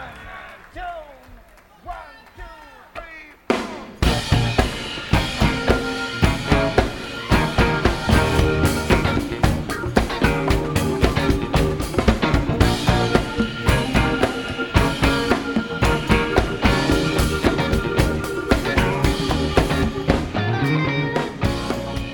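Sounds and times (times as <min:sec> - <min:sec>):
funk music: 0:03.5 - 0:22.1.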